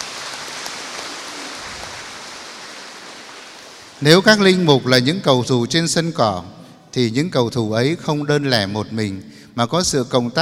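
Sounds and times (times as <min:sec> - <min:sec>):
audience applause: 0:00.0 - 0:04.0
speech: 0:04.0 - 0:10.4.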